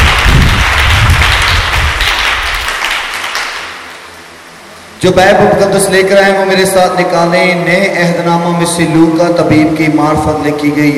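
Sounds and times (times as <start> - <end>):
audience applause: 0.0 - 3.8
speech: 5.0 - 10.9.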